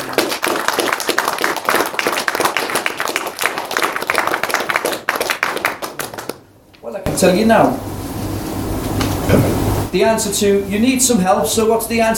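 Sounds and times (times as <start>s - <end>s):
audience applause: 0.0s - 6.4s
speech: 7.2s - 7.9s, 9.3s - 12.1s.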